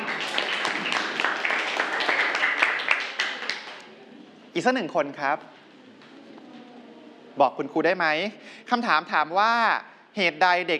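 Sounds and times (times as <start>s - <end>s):
group of students clapping: 0.0s - 3.9s
speech: 4.6s - 5.6s, 7.4s - 10.7s.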